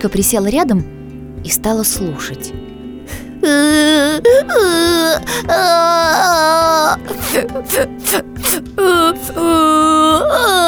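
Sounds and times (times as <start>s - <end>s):
speech: 0.0s - 10.6s
beaver cub crying loudly, story sound effect: 3.4s - 10.6s.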